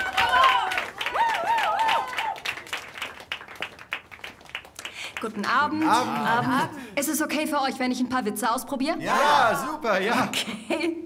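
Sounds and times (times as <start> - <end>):
audience clapping and applause: 0.0 - 6.4
speech: 5.2 - 11.0.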